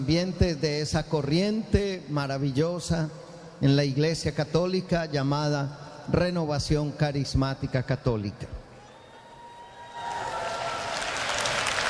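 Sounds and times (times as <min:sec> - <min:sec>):
speech: 0:00.0 - 0:08.6
audience applause: 0:09.7 - 0:11.8.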